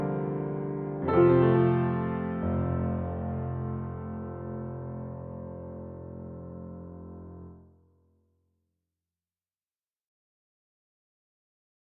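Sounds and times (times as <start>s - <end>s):
piano: 0.0s - 8.0s.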